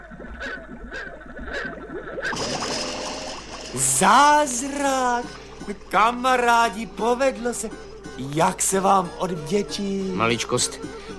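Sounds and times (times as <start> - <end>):
blowing bubbles through a straw into water: 0.0 - 4.6
speech: 3.8 - 11.1.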